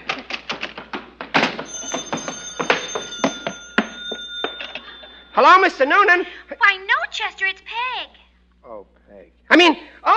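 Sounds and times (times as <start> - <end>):
telephone ringing: 1.6 - 7.0
speech: 5.4 - 8.2, 9.5 - 10.1.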